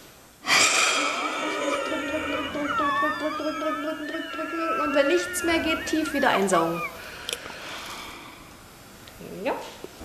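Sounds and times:
forceful exhalation into spirometer mouthpiece: 0:00.4 - 0:01.7, 0:06.5 - 0:08.6
laughter: 0:01.0 - 0:07.4
speech: 0:03.1 - 0:07.0.

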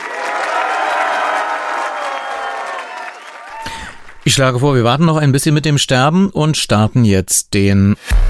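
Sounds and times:
audience clapping: 0:00.0 - 0:04.9
speech: 0:04.3 - 0:08.2.

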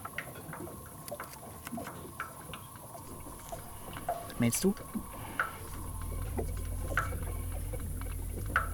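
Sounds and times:
water flowing through underground sewer channel: 0:00.0 - 0:08.7
faint drips: 0:00.1 - 0:08.7
speech: 0:04.4 - 0:05.0.

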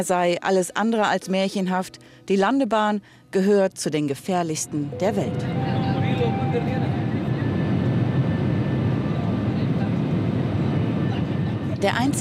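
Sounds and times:
speech: 0:00.0 - 0:05.6, 0:06.5 - 0:07.0, 0:11.8 - 0:12.2
airplane engine roar approaching to land: 0:04.8 - 0:12.2
thin high whine of airplane: 0:04.9 - 0:09.3.

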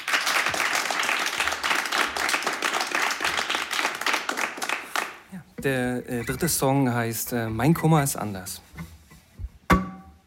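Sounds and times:
audience applause for a singer: 0:00.0 - 0:05.3
speech: 0:05.6 - 0:08.7.

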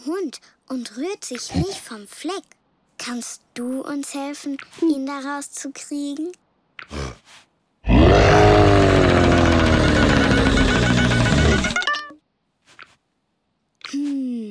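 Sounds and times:
speech: 0:00.0 - 0:07.5
lion roaring: 0:07.8 - 0:11.8.

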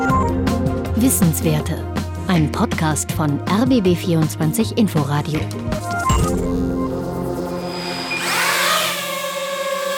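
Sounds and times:
speech: 0:01.0 - 0:06.4
drone flying: 0:06.0 - 0:09.9.

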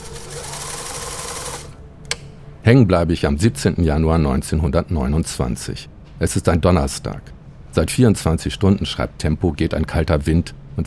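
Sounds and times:
microfilm reel spooling forward: 0:00.0 - 0:01.8
speech: 0:02.6 - 0:10.8.

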